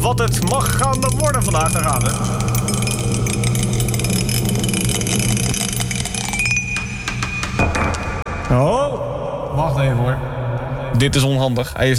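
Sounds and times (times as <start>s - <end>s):
speech: 0.0s - 2.9s, 8.5s - 9.0s, 9.6s - 10.3s, 10.9s - 11.9s
die rolling and rattling: 0.0s - 8.0s.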